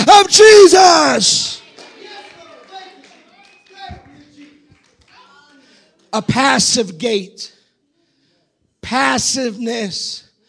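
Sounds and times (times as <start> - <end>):
many overlapping voices and shouts: 0.0 - 5.6
speech: 0.2 - 1.5, 6.1 - 7.6, 8.8 - 10.2
audience clapping: 1.0 - 6.4.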